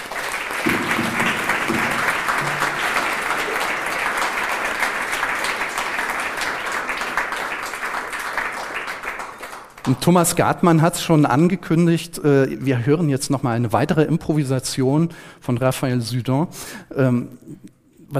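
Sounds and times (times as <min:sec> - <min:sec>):
audience applause: 0:00.0 - 0:10.0
speech: 0:09.9 - 0:18.1.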